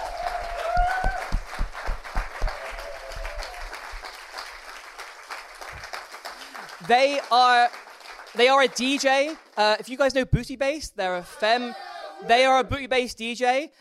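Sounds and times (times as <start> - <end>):
audience applause: 0.0 - 9.6
speech: 6.9 - 7.8, 8.4 - 13.7.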